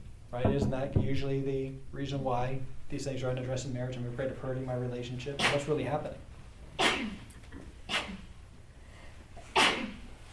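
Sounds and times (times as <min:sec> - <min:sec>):
speech: 0:00.3 - 0:06.3, 0:07.0 - 0:07.2
sneeze: 0:05.4 - 0:05.7, 0:06.8 - 0:07.3, 0:07.9 - 0:08.3, 0:09.4 - 0:10.1.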